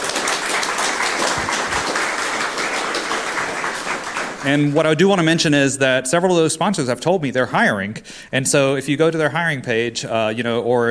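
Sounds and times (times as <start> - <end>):
audience round of applause: 0.0 - 5.0
speech: 4.4 - 10.8.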